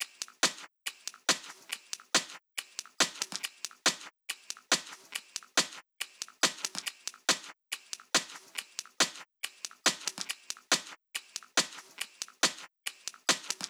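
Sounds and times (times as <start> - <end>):
hi-hat loop: 0.0 - 13.6
drum loop: 2.9 - 12.6, 13.2 - 13.6.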